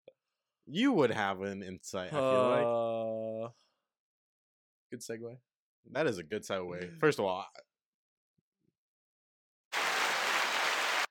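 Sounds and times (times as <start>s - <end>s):
speech: 0.7s - 3.6s, 4.9s - 7.7s
applause sound effect of crowd clapping: 9.8s - 11.0s.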